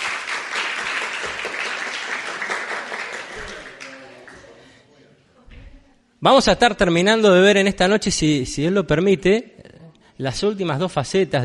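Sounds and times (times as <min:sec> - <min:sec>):
crowd applauding: 0:00.0 - 0:04.5
speech: 0:06.2 - 0:11.4.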